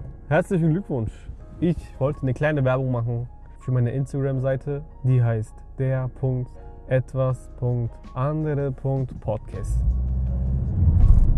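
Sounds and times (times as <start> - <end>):
speech: 0.3 - 10.0
car driven fast: 9.5 - 11.3.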